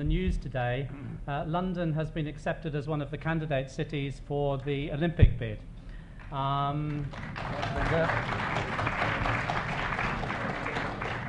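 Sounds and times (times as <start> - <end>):
speech: 0.0 - 5.7, 6.3 - 9.6
audience clapping: 6.2 - 11.2.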